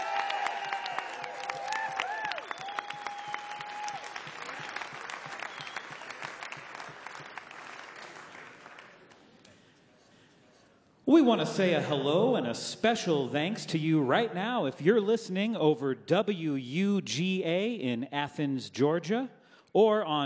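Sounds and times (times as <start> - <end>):
cheers: 0.0 - 7.2
large audience applause: 0.0 - 9.5
shrill whistles: 1.8 - 6.5
speech: 11.1 - 20.2.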